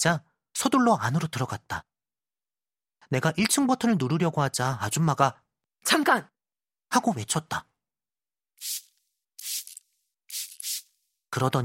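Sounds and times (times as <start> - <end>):
speech: 0.0 - 1.9, 3.1 - 7.7, 8.6 - 8.9, 11.4 - 11.6
hand sanitizer spritzed from a small spray bottle onto elevator buttons: 8.6 - 11.1.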